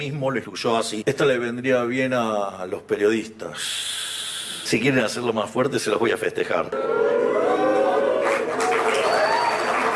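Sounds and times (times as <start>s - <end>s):
speech: 0.0s - 4.0s, 4.7s - 7.3s
crowd booing: 6.8s - 9.9s.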